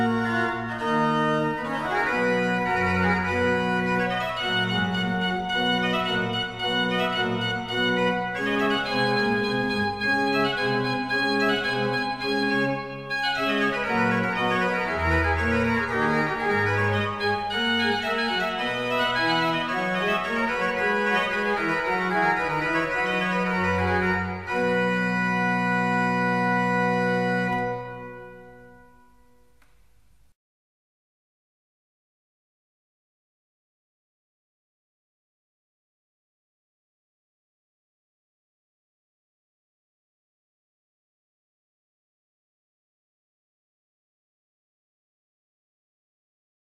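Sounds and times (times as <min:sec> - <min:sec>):
organ sonata: 0:00.0 - 0:30.3.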